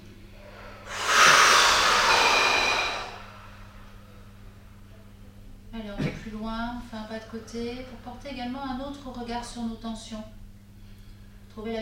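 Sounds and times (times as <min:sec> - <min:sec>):
person exhaling during a guided relaxation exercise: 0:00.3 - 0:04.0
speech: 0:07.1 - 0:10.4, 0:11.6 - 0:11.8.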